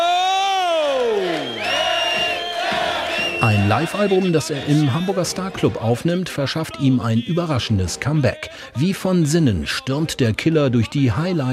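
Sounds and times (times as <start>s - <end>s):
concert audience cheering enthusiastically: 0.0s - 5.6s
speech: 3.5s - 11.5s.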